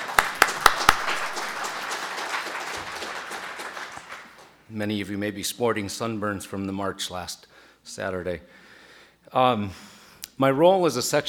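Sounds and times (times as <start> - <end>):
audience applauding: 0.0 - 4.6
speech: 4.7 - 8.6, 9.2 - 11.2.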